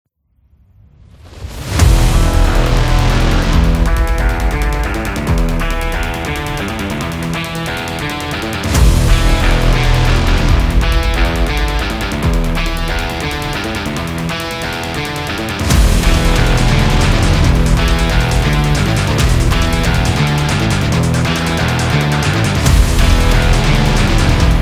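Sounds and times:
epic rock trailer music: 1.2s - 24.6s.

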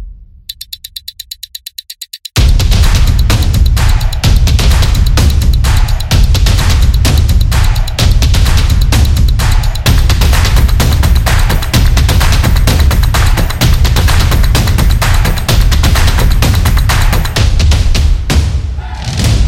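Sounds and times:
sport action beat: 0.5s - 19.4s.

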